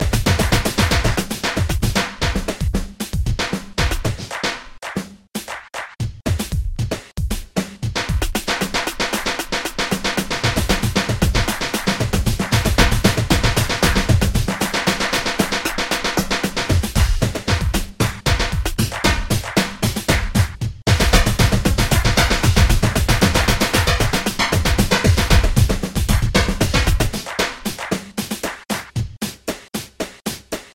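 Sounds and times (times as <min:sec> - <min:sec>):
Hydrogen drum rhythm: 0:00.0 - 0:30.7.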